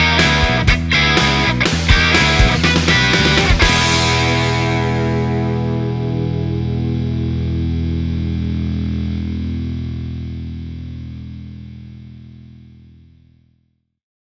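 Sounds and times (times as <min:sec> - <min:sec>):
backing music: 0:00.0 - 0:09.2.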